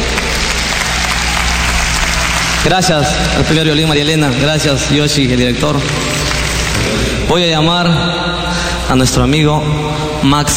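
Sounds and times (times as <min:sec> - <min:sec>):
audience applause for orchestra: 0:00.0 - 0:07.3
speech: 0:02.6 - 0:06.2, 0:07.3 - 0:10.5.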